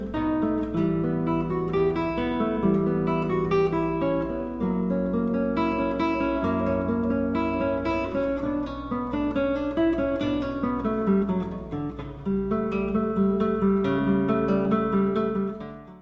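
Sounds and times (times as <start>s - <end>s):
classical piece on acoustic guitar: 0.0s - 16.0s.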